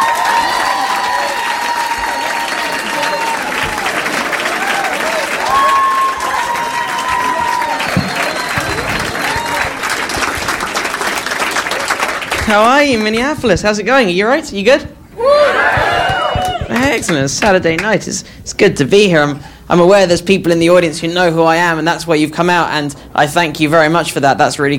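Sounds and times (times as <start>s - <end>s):
whoops and cheers: 0.0s - 9.9s, 15.2s - 16.8s
large audience applause: 0.0s - 13.2s, 15.3s - 17.5s
speech: 12.5s - 15.5s, 16.8s - 24.7s.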